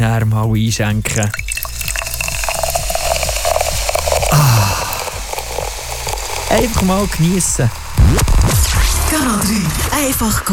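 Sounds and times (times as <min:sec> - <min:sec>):
speech: 0:00.1 - 0:01.6, 0:04.3 - 0:04.8, 0:06.5 - 0:10.5
drink bottle being opened: 0:01.1 - 0:08.5.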